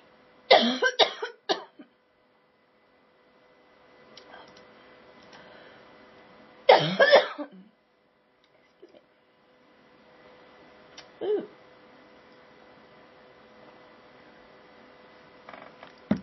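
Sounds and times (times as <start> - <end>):
person coughing after swallowing water wrong: 0.5 - 1.8, 6.7 - 7.7, 11.2 - 11.6.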